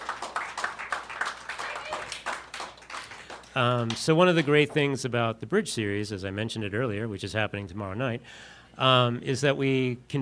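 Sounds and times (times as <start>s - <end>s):
audience clapping: 0.0s - 5.0s
speech: 3.6s - 10.2s.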